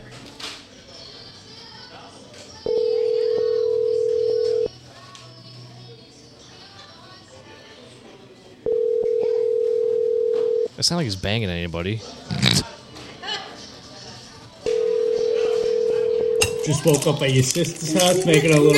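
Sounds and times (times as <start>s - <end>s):
faint murmur: 0.0s - 18.7s
phone ringback from an outgoing call: 2.7s - 4.7s, 8.7s - 10.7s, 14.7s - 17.0s
speech: 10.9s - 12.7s, 16.7s - 18.7s.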